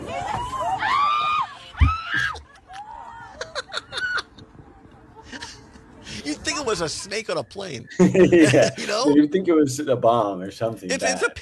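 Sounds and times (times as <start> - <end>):
airplane passengers screaming at loose pigeon: 0.0 - 4.4
laughter: 2.1 - 6.4, 7.8 - 9.3
speech: 6.7 - 11.3.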